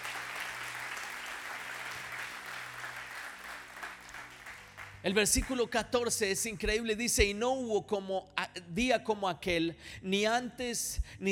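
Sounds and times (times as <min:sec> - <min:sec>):
audience applause: 0:00.0 - 0:05.0
speech: 0:05.0 - 0:11.3.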